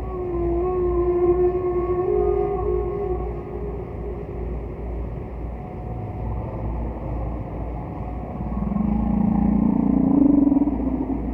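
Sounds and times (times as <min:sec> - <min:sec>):
distant whale calls: 0:00.0 - 0:11.3
low rumble: 0:06.0 - 0:11.3.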